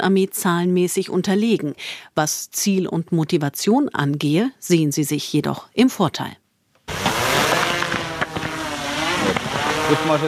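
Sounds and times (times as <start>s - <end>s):
speech: 0.0s - 7.1s, 9.9s - 10.2s
black Mavic quadcopter drone taking off: 6.9s - 10.2s.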